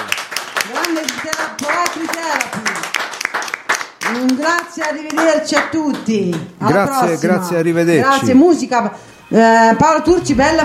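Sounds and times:
audience applause: 0.0s - 5.4s
speech: 4.1s - 10.6s.

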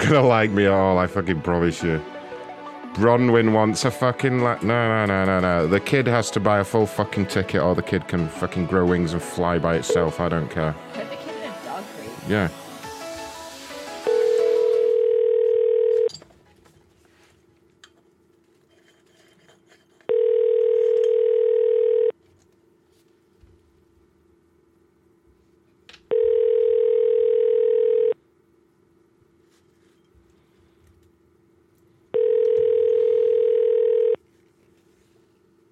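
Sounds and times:
speech: 0.0s - 2.2s, 3.0s - 11.2s, 12.2s - 12.6s
telephone ringing on an outgoing call: 14.0s - 16.1s, 20.1s - 22.1s, 26.1s - 28.2s, 32.1s - 34.2s.

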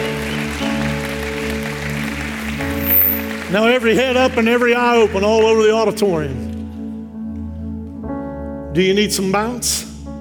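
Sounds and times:
audience hand clapping: 0.0s - 6.6s
speech: 3.5s - 6.5s, 8.8s - 9.9s.

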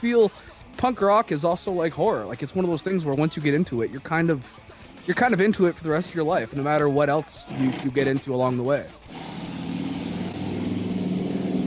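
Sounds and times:
speech: 0.0s - 9.3s
car driving away: 9.0s - 11.6s.

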